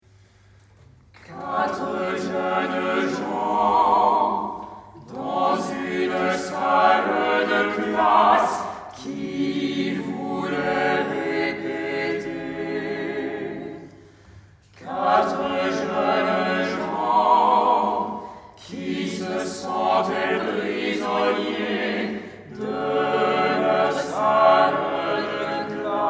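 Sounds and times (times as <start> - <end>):
choir singing live: 1.2 - 26.0.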